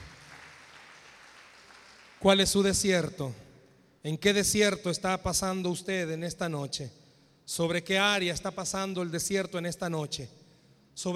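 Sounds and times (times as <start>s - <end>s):
audience applauding: 0.0s - 2.4s
speech: 2.2s - 3.4s, 4.0s - 10.4s, 11.0s - 11.1s.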